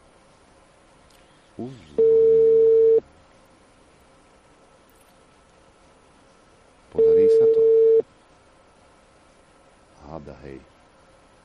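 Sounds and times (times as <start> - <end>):
speech: 1.6 - 2.2, 10.4 - 10.8
telephone ringback tone on a call: 2.0 - 3.0, 7.0 - 8.0.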